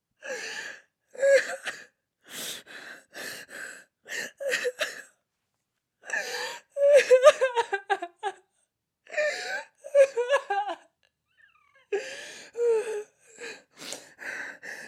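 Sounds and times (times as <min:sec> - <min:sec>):
woman sobbing: 0:04.2 - 0:05.1, 0:06.0 - 0:10.9, 0:11.7 - 0:13.7.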